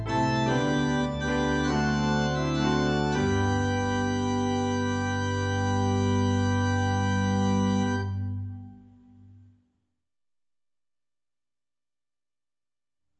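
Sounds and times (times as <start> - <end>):
instrumental praise and worship hymn: 0.0 - 9.6.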